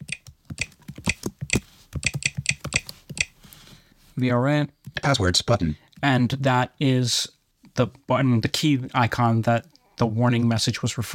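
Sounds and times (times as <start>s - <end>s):
fingers typing a password on a Mac computer keyboard: 0.0s - 3.3s
speech: 4.2s - 11.1s.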